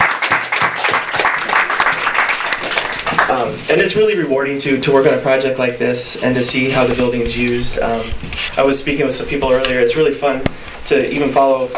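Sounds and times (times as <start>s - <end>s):
crowd applauding: 0.0s - 4.0s
speech: 3.4s - 11.7s.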